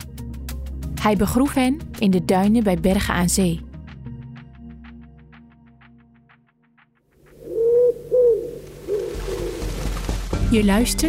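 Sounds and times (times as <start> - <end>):
speech: 1.0 - 3.7, 10.5 - 11.0
pigeons cooing: 7.3 - 10.0.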